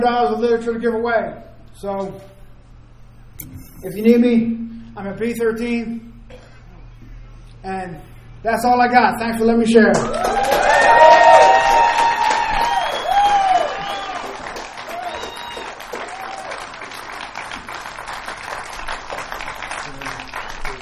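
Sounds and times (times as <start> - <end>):
speech: 0.0 - 2.4, 3.4 - 6.1, 7.6 - 10.6
high whoops and cheers: 10.0 - 16.8
audience applause: 10.0 - 20.8.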